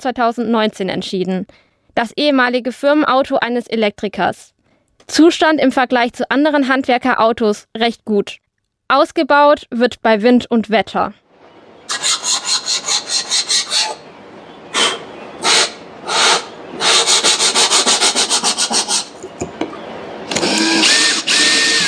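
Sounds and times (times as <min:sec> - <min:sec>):
speech: 0:00.0 - 0:11.2
jigsaw cutting curves in panelling: 0:11.9 - 0:14.0, 0:15.5 - 0:19.1, 0:20.3 - 0:21.8.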